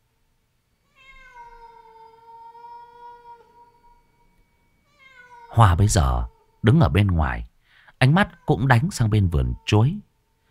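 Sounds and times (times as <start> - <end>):
cat meowing eerily: 0.9 - 6.6, 8.1 - 10.0
speech: 5.6 - 10.1.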